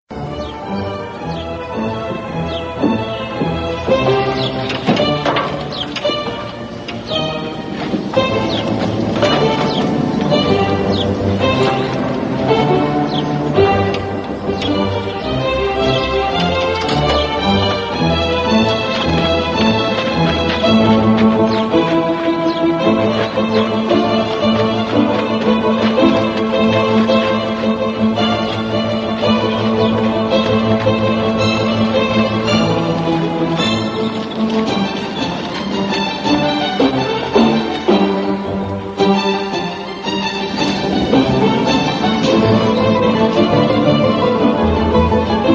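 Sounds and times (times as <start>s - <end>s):
violin: 0.1s - 45.5s.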